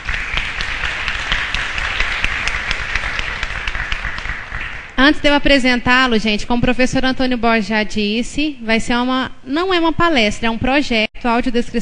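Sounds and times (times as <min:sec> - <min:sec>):
audience applause: 0:00.0 - 0:05.0
speech: 0:05.0 - 0:11.7.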